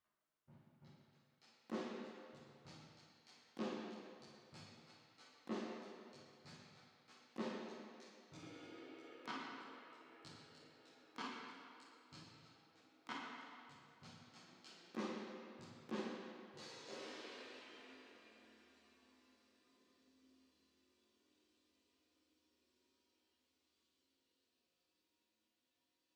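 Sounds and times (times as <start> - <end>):
drums with reverb: 1.7 - 19.2.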